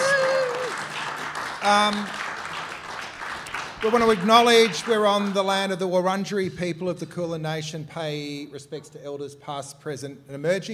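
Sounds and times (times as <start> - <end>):
audience clapping: 0.0 - 5.7
speech: 1.6 - 2.2, 3.8 - 10.7.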